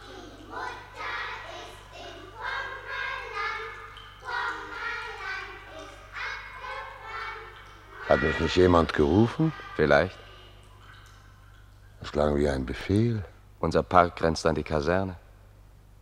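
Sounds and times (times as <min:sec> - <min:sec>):
children playing and singing a round song: 0:00.0 - 0:10.6
speech: 0:08.1 - 0:10.2, 0:12.1 - 0:15.2.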